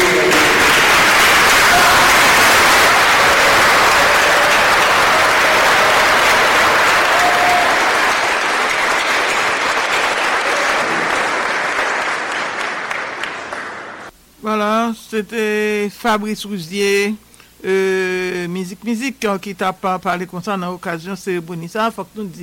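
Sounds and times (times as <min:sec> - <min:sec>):
crowd clapping in a standing ovation: 0:00.0 - 0:14.1
speech: 0:15.1 - 0:22.4.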